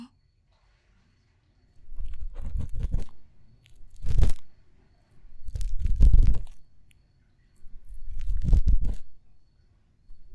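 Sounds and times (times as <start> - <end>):
ASMR ear cleaning on a lap pillow: 1.9 - 4.5, 7.8 - 9.1.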